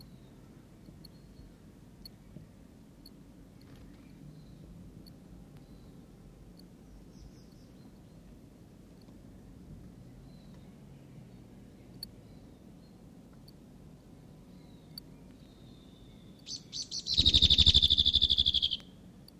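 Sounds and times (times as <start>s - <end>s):
whitehead territorial whistle call: 16.5s - 18.8s.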